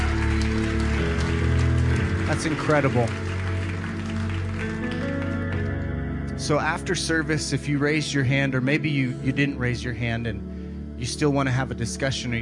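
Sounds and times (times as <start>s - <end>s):
audience applause: 0.0s - 5.8s
speech: 2.3s - 3.2s, 6.4s - 12.4s.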